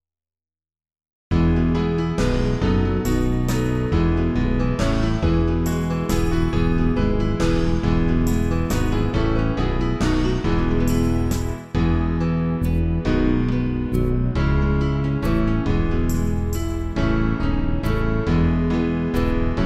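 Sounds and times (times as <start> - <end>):
backing music: 1.4 - 19.6.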